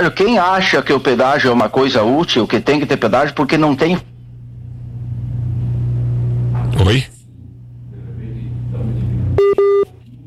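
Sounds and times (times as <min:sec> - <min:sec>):
speech: 0:00.0 - 0:04.1, 0:06.9 - 0:07.1
low hum and rumble: 0:02.1 - 0:10.2
telephone keypad tones as a call is redialed: 0:09.4 - 0:10.0.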